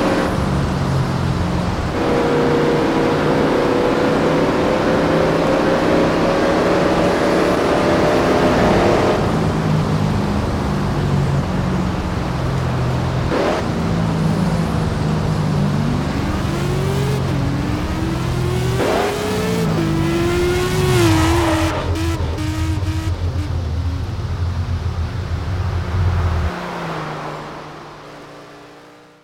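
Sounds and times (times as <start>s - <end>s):
1999 Shelby Series 1 car engine: 0.0s - 29.2s.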